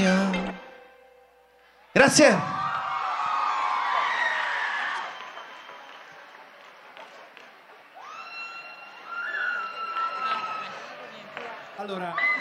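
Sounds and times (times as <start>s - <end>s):
speech: 2.0s - 2.6s, 11.9s - 12.3s
audience applause: 2.4s - 12.3s.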